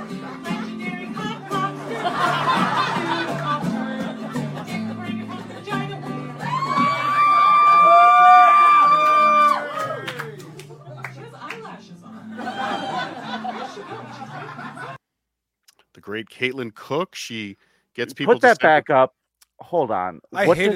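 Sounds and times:
laughter: 0:01.6 - 0:06.0, 0:09.6 - 0:15.0
audience cheering loudly: 0:06.4 - 0:10.4
speech: 0:16.4 - 0:20.7.

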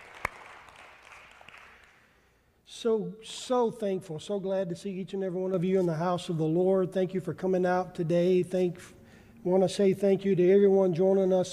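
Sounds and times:
audience hand clapping: 0:00.0 - 0:02.2
speech: 0:02.8 - 0:11.5.

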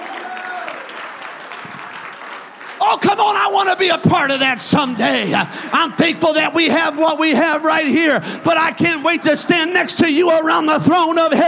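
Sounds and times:
audience clapping hands: 0:00.0 - 0:04.3
speech: 0:03.0 - 0:11.4.

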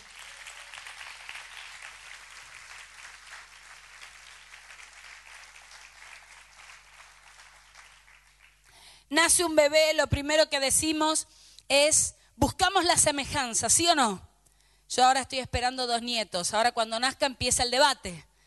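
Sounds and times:
audience applause: 0:00.0 - 0:08.7
speech: 0:09.1 - 0:14.3, 0:14.9 - 0:18.3.

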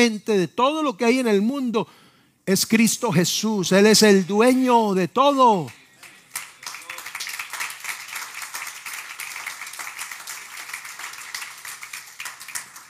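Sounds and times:
speech: 0:00.0 - 0:05.8
audience applause: 0:06.0 - 0:12.8.

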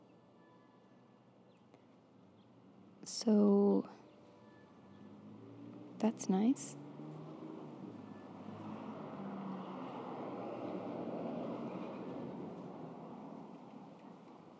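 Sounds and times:
speech: 0:03.0 - 0:04.0, 0:06.0 - 0:06.8
cars driving past a front yard in Arizona: 0:04.5 - 0:14.5.

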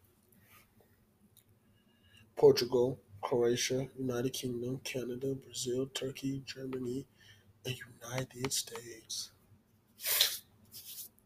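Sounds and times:
speech: 0:02.4 - 0:09.4, 0:10.0 - 0:10.3
person sniffing: 0:10.0 - 0:11.0.

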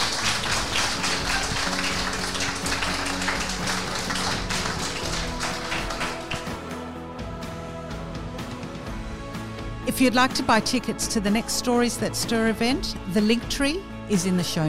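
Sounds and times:
audience applause: 0:00.0 - 0:06.6
speech: 0:09.9 - 0:14.6.

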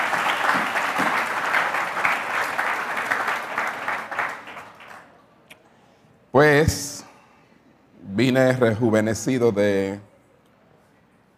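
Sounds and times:
audience applause: 0:00.0 - 0:05.1
speech: 0:06.4 - 0:07.0, 0:08.2 - 0:10.1.

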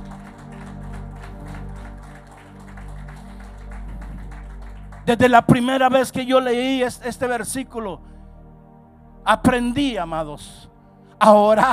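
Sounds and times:
audience applauding: 0:00.0 - 0:05.6
speech: 0:05.0 - 0:08.1, 0:09.2 - 0:11.7.

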